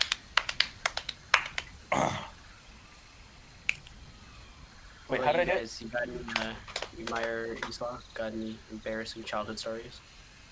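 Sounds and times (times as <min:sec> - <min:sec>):
hand clapping: 0:00.0 - 0:01.8, 0:06.2 - 0:07.8
speech: 0:05.1 - 0:10.2.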